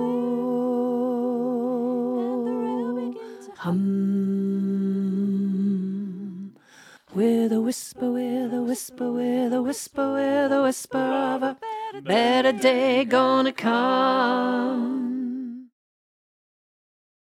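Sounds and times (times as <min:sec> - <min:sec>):
tenor vocal learning track: 0:00.0 - 0:15.7.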